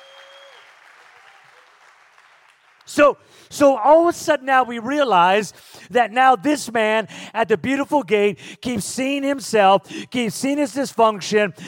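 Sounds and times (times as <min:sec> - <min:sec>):
audience hand clapping: 0:00.0 - 0:03.0
speech: 0:02.9 - 0:11.6.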